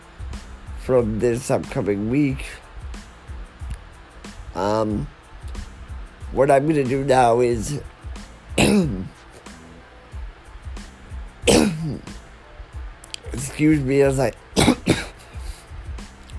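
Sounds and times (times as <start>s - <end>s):
speech: 0.8s - 2.6s, 4.6s - 5.2s, 6.3s - 7.9s, 8.6s - 9.2s, 13.6s - 14.4s
person coughing with a lingering cough after pneumonia: 8.6s - 9.1s, 11.4s - 12.1s, 14.6s - 15.5s.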